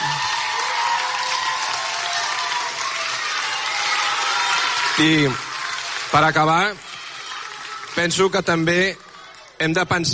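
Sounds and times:
audience applause: 0.0 - 10.1
speech: 5.0 - 5.5, 6.1 - 6.9, 8.0 - 9.0, 9.6 - 10.1.

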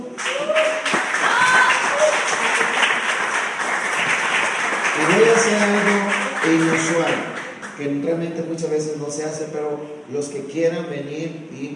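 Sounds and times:
audience applause: 0.0 - 7.8
speech: 6.5 - 11.7.

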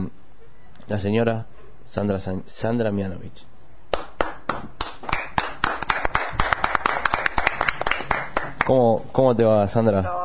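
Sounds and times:
speech: 0.9 - 3.5, 8.7 - 10.2
small group clapping: 3.9 - 8.8.

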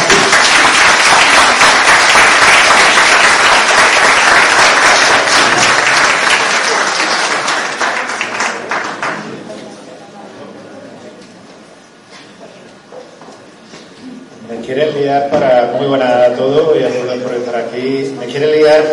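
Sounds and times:
audience applause: 0.0 - 9.5
speech: 15.1 - 18.9.

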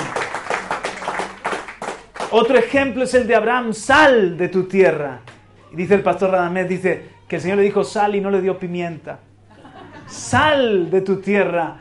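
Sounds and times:
audience applause: 0.0 - 2.8
speech: 2.3 - 9.3, 10.1 - 11.8
laughter: 9.4 - 10.4.

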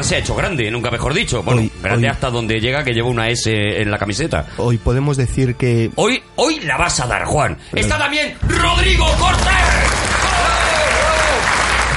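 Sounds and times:
speech: 0.0 - 10.1
audience applause: 9.3 - 11.9.

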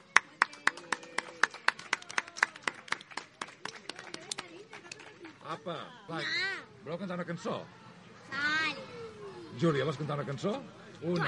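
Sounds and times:
small audience applause: 0.0 - 5.3
speech: 5.5 - 8.9, 9.6 - 11.2.

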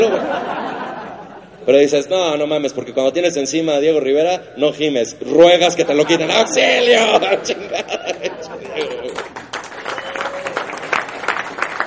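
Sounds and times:
laughter: 0.0 - 1.6, 5.9 - 9.2
speech: 1.6 - 9.3
crowd applauding: 8.1 - 11.8.

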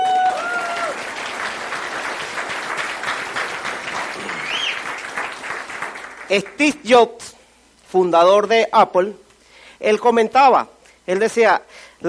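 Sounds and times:
audience applause: 0.0 - 6.6
speech: 6.3 - 7.3, 7.9 - 9.2, 9.8 - 12.0.

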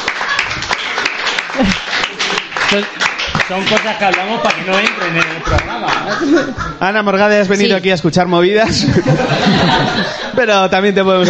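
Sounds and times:
applause: 0.0 - 6.0
laughter: 0.0 - 7.4, 8.5 - 11.2
speech: 1.6 - 2.0, 2.7 - 11.2.

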